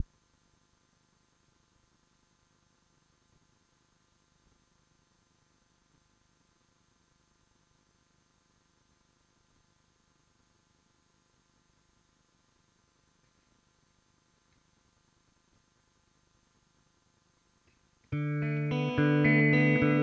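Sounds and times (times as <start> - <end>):
guitar: 18.1 - 20.0.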